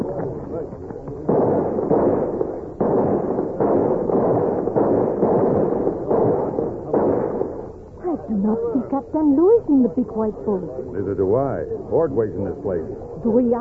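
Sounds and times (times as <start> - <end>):
rifle volley fired as a salute: 0.0 - 7.8
speech: 9.0 - 13.6.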